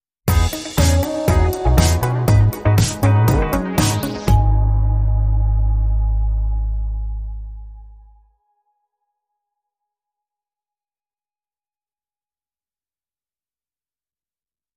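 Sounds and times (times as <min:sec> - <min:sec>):
catwalk strut music sting: 0:00.3 - 0:08.2.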